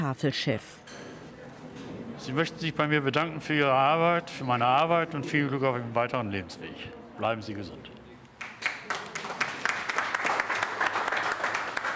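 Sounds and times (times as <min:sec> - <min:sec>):
speech: 0:00.1 - 0:01.1, 0:02.2 - 0:08.0
applause: 0:08.4 - 0:11.9.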